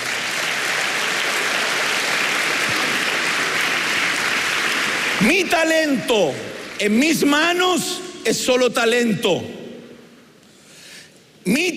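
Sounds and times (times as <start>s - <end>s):
audience clapping: 0.0s - 7.8s
speech: 5.2s - 9.6s, 11.4s - 11.7s.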